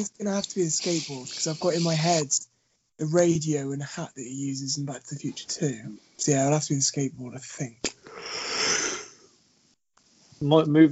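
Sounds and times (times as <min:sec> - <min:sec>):
speech: 0:00.0 - 0:08.5, 0:10.4 - 0:10.9
breathing close to microphone: 0:00.8 - 0:02.8, 0:08.0 - 0:09.3.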